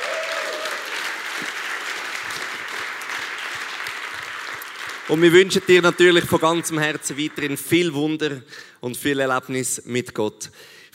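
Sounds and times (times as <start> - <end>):
audience applause: 0.0 - 8.0
speech: 5.1 - 10.9.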